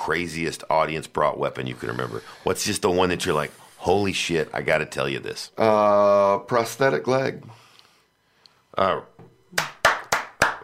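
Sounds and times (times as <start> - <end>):
speech: 0.0 - 7.6, 8.8 - 9.7
single person clapping: 9.5 - 10.6.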